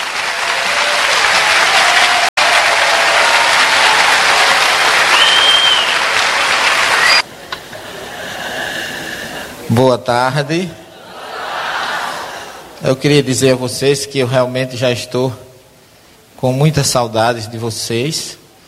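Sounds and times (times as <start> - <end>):
audience applause: 0.0 - 7.3
laughter: 7.3 - 8.7, 10.8 - 12.8
speech: 9.8 - 10.8, 12.8 - 15.4, 16.4 - 18.4.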